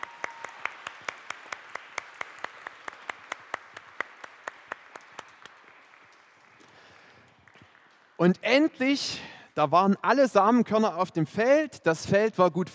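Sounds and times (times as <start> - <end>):
small audience clapping in time: 0.0 - 8.7
speech: 8.2 - 12.7.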